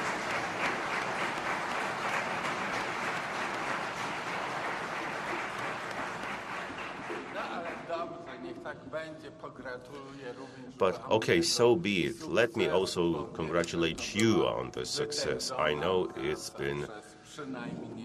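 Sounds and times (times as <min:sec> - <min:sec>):
audience applause: 0:00.0 - 0:07.9
speech: 0:08.6 - 0:18.0.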